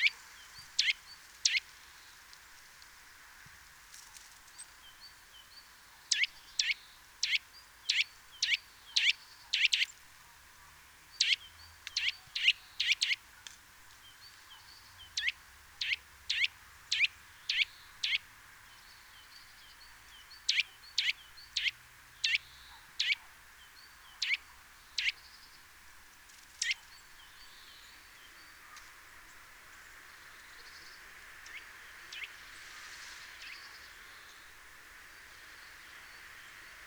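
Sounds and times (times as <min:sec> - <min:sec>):
faint background hiss: 0:00.0 - 0:36.8
Eurasian nuthatch calling: 0:00.8 - 0:01.6, 0:06.1 - 0:10.0, 0:11.2 - 0:13.2, 0:14.6 - 0:18.2, 0:20.4 - 0:23.3, 0:24.1 - 0:25.2, 0:26.4 - 0:27.2.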